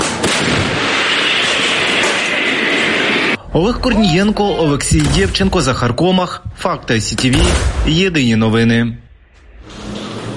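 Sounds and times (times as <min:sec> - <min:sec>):
artillery gun firing a shot: 0:00.0 - 0:03.2, 0:07.2 - 0:08.0
speech: 0:03.6 - 0:09.0.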